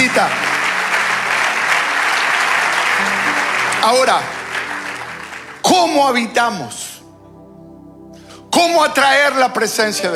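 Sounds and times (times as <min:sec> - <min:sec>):
audience applauding: 0:00.0 - 0:06.8
speech: 0:00.1 - 0:00.5, 0:03.8 - 0:04.4, 0:05.7 - 0:06.8, 0:08.6 - 0:10.1.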